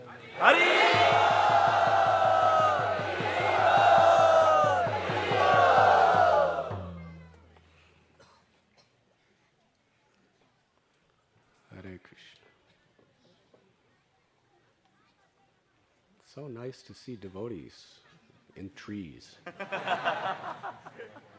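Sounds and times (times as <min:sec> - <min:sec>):
crowd of devotees shouting and cheering a welcome: 0:00.0 - 0:07.4
speech: 0:00.4 - 0:01.0, 0:16.7 - 0:18.0, 0:18.6 - 0:21.3
laughter: 0:19.5 - 0:21.3.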